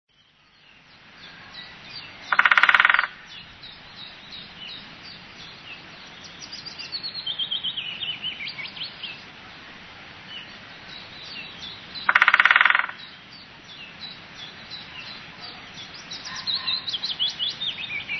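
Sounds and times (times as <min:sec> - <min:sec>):
songbirds twittering: 0:00.1 - 0:18.1
woodpecker rattle: 0:02.3 - 0:03.4, 0:12.0 - 0:13.1.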